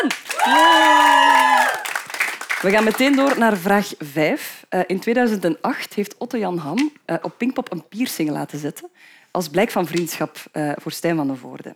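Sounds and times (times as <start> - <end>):
speech: 0.0 - 0.9, 2.6 - 11.7
clapping: 0.0 - 3.4
team cheering: 0.0 - 3.4.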